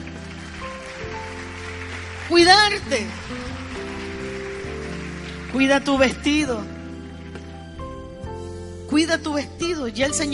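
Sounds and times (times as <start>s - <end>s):
audience applause: 0.0s - 7.7s
speech: 2.3s - 3.6s, 5.5s - 6.7s, 8.9s - 10.3s.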